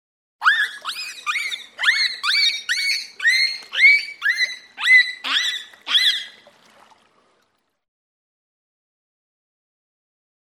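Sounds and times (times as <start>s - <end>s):
pilot whale whistling calls: 0.4s - 6.5s.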